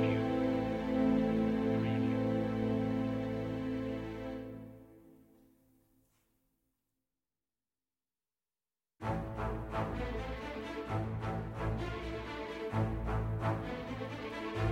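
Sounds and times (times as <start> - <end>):
brass: 0.0 - 5.2, 9.0 - 14.7
strings: 0.0 - 5.2, 9.0 - 14.7.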